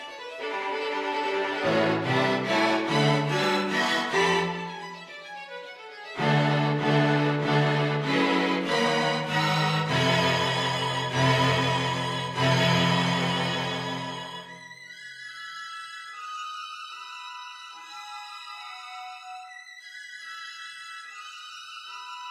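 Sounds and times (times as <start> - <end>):
string quartet: 0.0 - 14.8.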